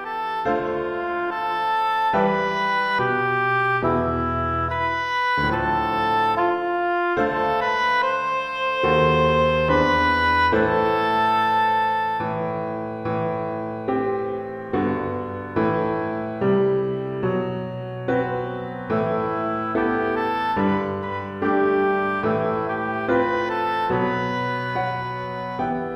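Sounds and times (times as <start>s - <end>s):
oboe: 0.0s - 25.9s
piano: 0.0s - 25.9s.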